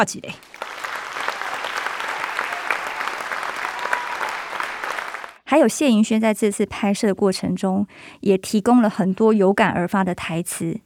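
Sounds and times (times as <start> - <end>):
speech: 0.0 - 0.6, 5.5 - 10.8
canned applause sound effect: 0.4 - 5.4.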